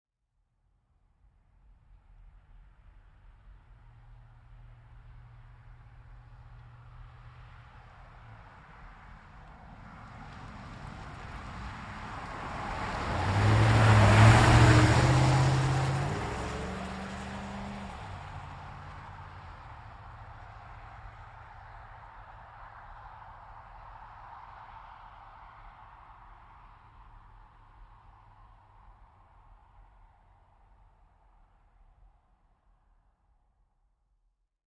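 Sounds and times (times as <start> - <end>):
GMC Savana truck passing by a corner fast: 5.3 - 24.9.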